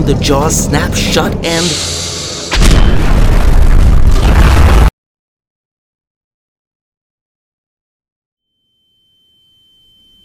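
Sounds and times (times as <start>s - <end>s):
speech: 0.0s - 3.1s
grenade explosion: 1.8s - 4.9s.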